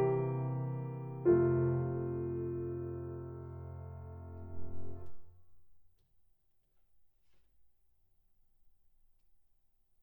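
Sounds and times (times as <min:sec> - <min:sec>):
miniature chorale music: 0:00.0 - 0:05.3.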